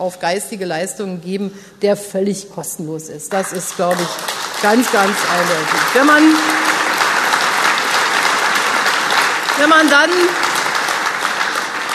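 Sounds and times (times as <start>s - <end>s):
speech: 0.0s - 6.8s, 9.6s - 10.5s
audience applause: 3.4s - 11.9s.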